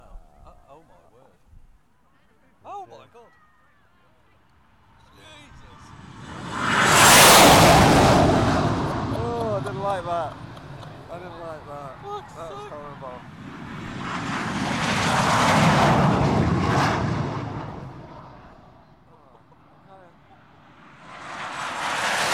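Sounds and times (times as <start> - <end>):
Red Arrows jets buzzing past: 4.8 - 22.3.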